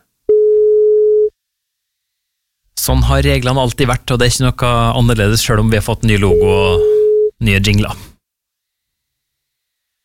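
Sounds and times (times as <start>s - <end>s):
phone ringback beep: 0.3s - 1.3s, 6.3s - 7.4s
speech: 2.9s - 8.1s.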